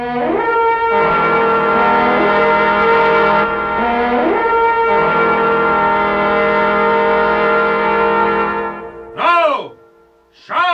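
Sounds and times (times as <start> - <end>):
priests blowing trumpets: 0.0 - 10.7.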